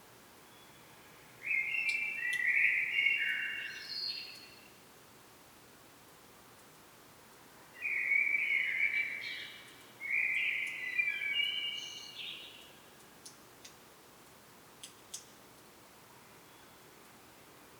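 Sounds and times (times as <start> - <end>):
common blackbird song: 0.4 - 4.8, 7.8 - 12.8
faint common blackbird ticks: 1.8 - 2.6, 9.6 - 11.7, 12.5 - 15.7.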